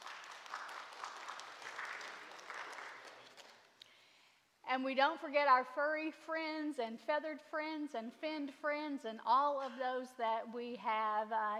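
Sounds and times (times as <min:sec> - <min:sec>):
audience clapping: 0:00.0 - 0:03.8
speech: 0:04.7 - 0:11.5.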